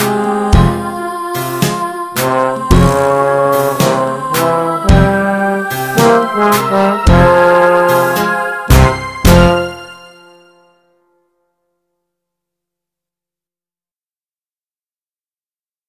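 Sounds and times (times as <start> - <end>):
Spanish tango music: 1.5 - 10.6.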